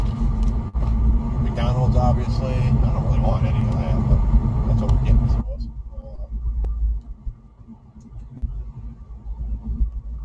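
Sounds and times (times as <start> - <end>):
car engine rumble while driving on the road: 0.0 - 10.2.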